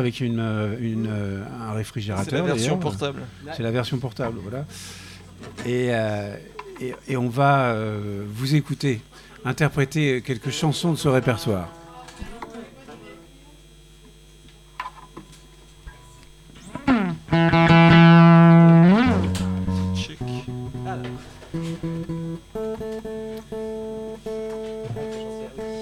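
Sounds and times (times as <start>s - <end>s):
speech: 0.0s - 12.3s
guitars being tuned: 16.6s - 25.8s.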